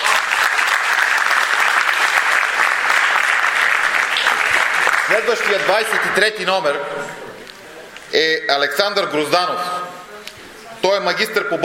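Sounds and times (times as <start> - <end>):
audience applause: 0.0 - 6.4
speech: 5.2 - 7.3, 8.1 - 9.9, 10.8 - 11.6.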